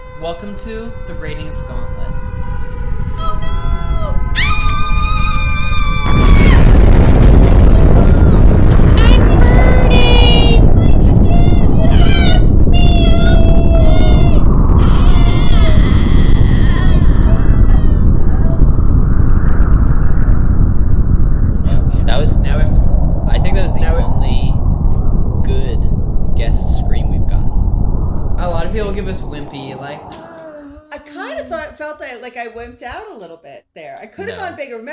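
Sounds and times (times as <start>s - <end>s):
heavy steady low rumble: 0.0s - 30.9s
speech: 0.2s - 2.2s
loud shrill human scream: 3.2s - 6.8s, 11.2s - 19.0s, 29.7s - 30.9s.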